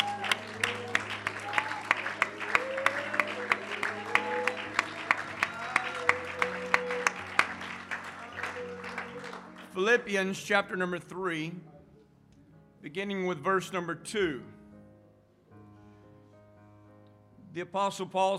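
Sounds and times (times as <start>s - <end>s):
church congregation clapping hands in worship: 0.0s - 10.4s
speech: 9.8s - 11.7s, 12.8s - 14.5s, 17.6s - 18.3s.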